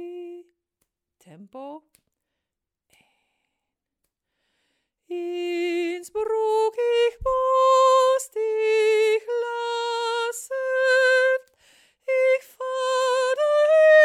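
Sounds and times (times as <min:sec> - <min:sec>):
tenor singing: 0:05.1 - 0:11.5, 0:12.1 - 0:14.0.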